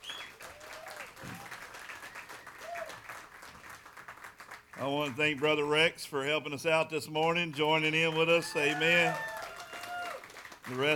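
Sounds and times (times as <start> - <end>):
audience applauding the band: 0.0 - 5.1, 8.0 - 10.9
speech: 4.8 - 9.3, 10.7 - 10.9.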